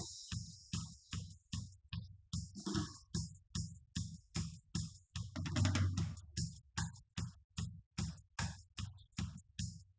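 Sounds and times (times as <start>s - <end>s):
drums live recording: 0.0s - 9.9s.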